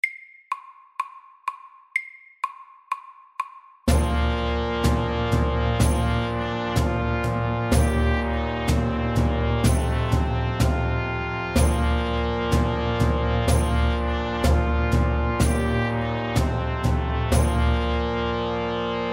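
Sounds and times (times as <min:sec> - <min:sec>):
fast English melody: 0:03.9 - 0:19.1.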